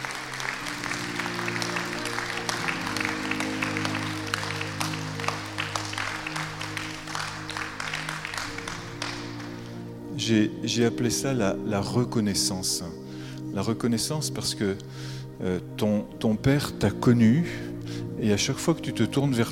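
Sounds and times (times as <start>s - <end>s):
audience applauding: 0.0s - 9.9s
speech: 10.3s - 13.0s, 13.6s - 19.5s.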